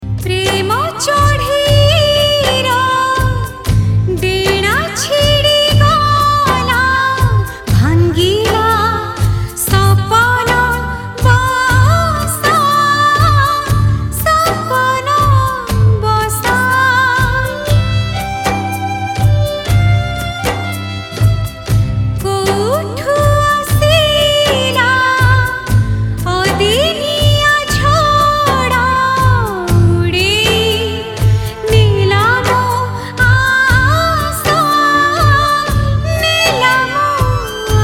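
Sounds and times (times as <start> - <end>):
woman singing an Odia song: 0.2 - 37.8.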